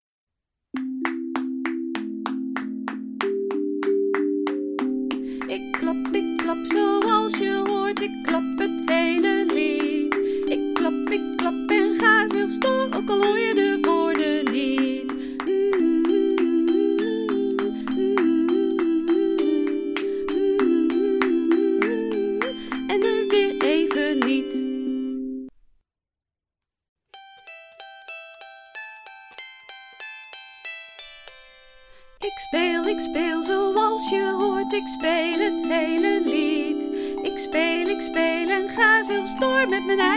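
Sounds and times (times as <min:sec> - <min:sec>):
clapping song with singing: 0:00.8 - 0:24.6, 0:32.5 - 0:40.1.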